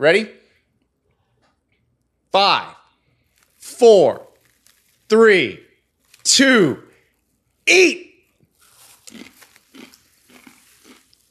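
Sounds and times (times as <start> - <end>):
speech: 0.0 - 0.4, 2.3 - 2.8, 3.7 - 4.3, 5.1 - 5.7, 6.3 - 6.9, 7.7 - 8.1
biting and chewing a crunchy chip: 3.3 - 7.6, 8.2 - 11.3.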